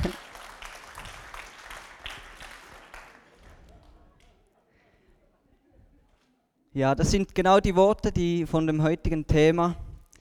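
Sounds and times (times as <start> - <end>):
applause: 0.0 - 4.4
speech: 6.8 - 9.8.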